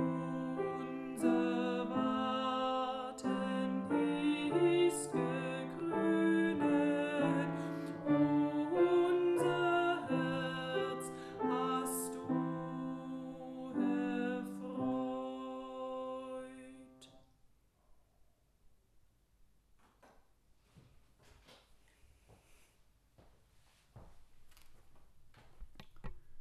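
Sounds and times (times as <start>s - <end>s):
alto part of a three-part choral piece: 0.0s - 17.2s.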